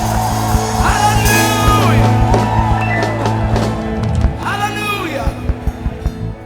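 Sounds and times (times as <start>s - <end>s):
whoops and yells: 0.0s - 4.8s
audience shouting and cheering in praise: 0.0s - 6.4s.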